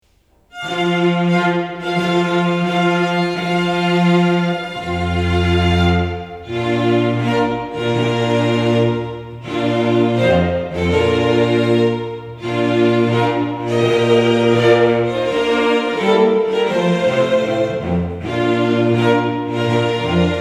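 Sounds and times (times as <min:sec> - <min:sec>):
vocal quartet singing a wedding chorus: 0:01.3 - 0:20.3.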